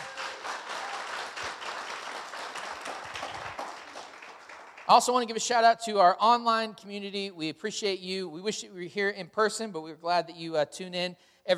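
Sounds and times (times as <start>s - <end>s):
church congregation clapping for first-time guests: 0.0s - 5.6s
speech: 4.9s - 11.5s.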